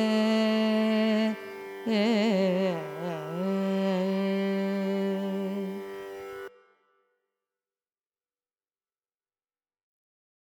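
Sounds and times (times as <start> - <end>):
carnatic raga music: 0.0 - 7.0.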